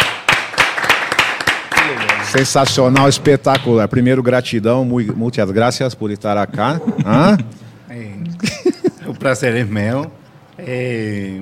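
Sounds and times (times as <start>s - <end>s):
audience applause: 0.0s - 3.3s
speech: 1.9s - 8.1s, 9.2s - 11.4s
laughter: 6.6s - 7.5s, 8.4s - 9.6s.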